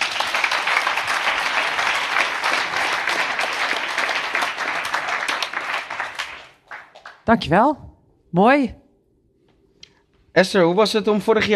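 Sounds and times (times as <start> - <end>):
applause: 0.0 - 7.3
speech: 7.3 - 8.8, 10.4 - 11.5.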